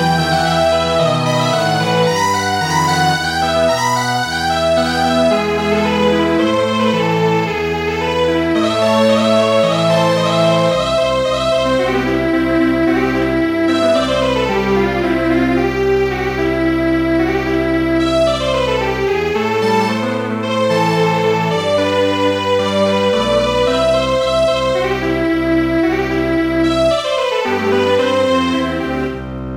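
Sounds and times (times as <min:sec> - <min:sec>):
string quartet playing: 0:00.0 - 0:29.5.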